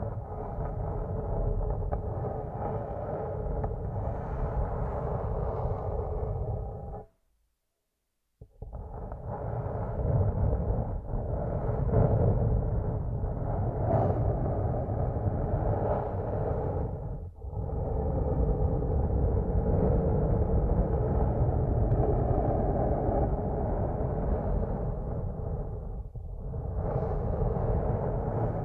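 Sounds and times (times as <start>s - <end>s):
ASMR massage rubbing picked up through headphones used as a microphone: 0.0s - 7.0s, 8.6s - 28.6s.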